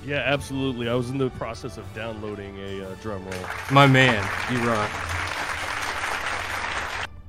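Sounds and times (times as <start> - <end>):
speech: 0.0 - 5.2
crowd applause sound effect: 3.3 - 7.1.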